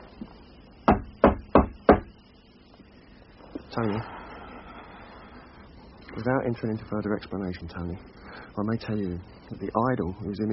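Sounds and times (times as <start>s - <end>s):
firm knocking on a door: 0.8s - 2.1s
speech: 3.8s - 4.2s, 6.2s - 10.5s.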